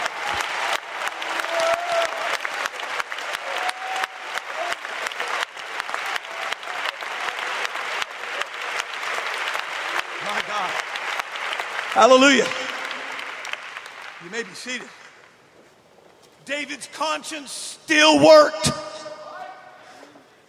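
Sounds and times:
audience clapping hands in praise: 0:00.0 - 0:15.5
speech: 0:12.0 - 0:12.6, 0:14.3 - 0:15.0, 0:16.5 - 0:18.8.

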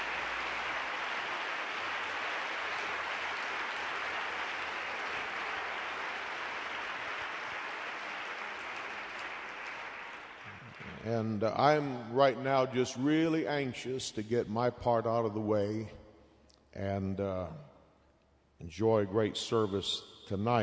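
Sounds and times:
audience round of applause: 0:00.0 - 0:11.3
speech: 0:11.0 - 0:16.0, 0:16.8 - 0:17.7, 0:18.6 - 0:20.6.

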